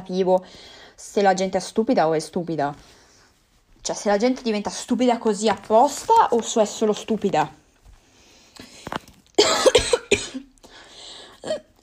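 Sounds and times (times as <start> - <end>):
speech: 0.0 - 3.0, 3.8 - 7.6
harsh coughing fit from someone choking: 9.4 - 10.6.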